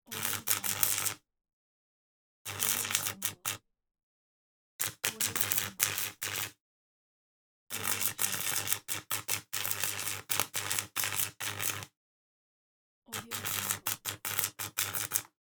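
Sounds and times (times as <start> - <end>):
arc welder: 0.1 - 1.2, 2.5 - 3.6, 4.8 - 6.6, 7.7 - 11.9, 13.2 - 15.3.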